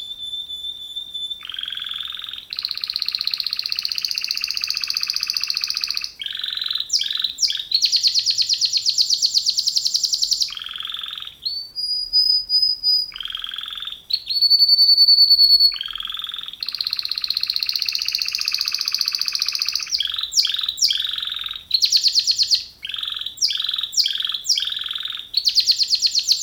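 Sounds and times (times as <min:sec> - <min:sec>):
canary song: 0:00.0 - 0:26.4.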